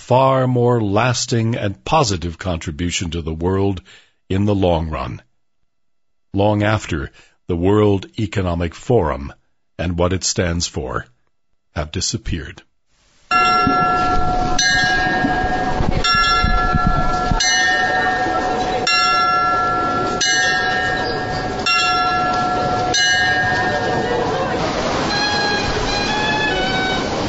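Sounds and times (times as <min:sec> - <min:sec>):
speech: 0:00.1 - 0:05.3, 0:06.3 - 0:12.7
Zytglogge clock tower bell strikes in Bern Switzerland: 0:13.3 - 0:27.0
chiming tones: 0:13.3 - 0:27.1.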